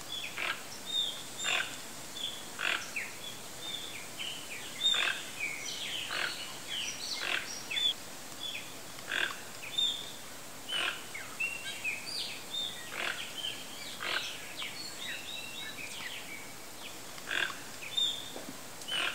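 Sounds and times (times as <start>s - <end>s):
birds: 0.0s - 19.1s.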